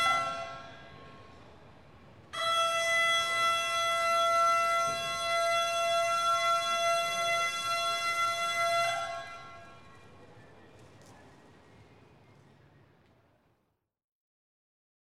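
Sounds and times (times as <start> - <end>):
fire brigade alarm: 0.0 - 12.0.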